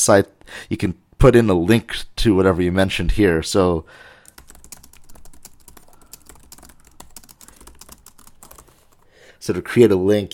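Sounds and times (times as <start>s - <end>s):
speech: 0.0s - 4.1s, 9.5s - 10.3s
typing link text on a computer keyboard: 4.2s - 9.1s.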